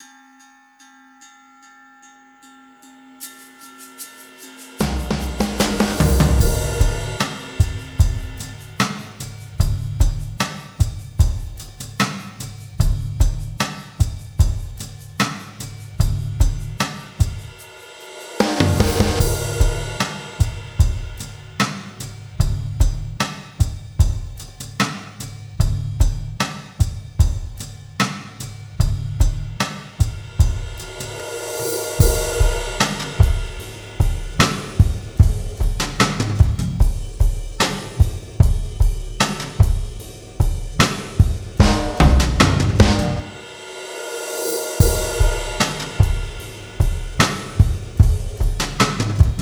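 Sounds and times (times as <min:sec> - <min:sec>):
drums: 0:03.9 - 0:49.3.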